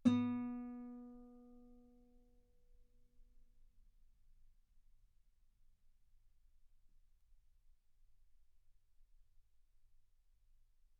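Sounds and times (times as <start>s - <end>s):
guitar note B3: 0.0s - 1.3s.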